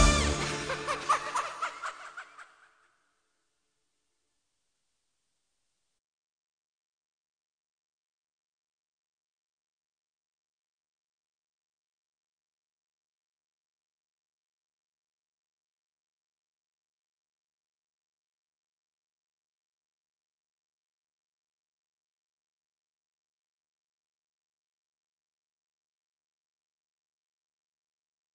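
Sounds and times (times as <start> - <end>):
zouk dance music: 0.0 - 1.2
laughter: 0.0 - 2.8.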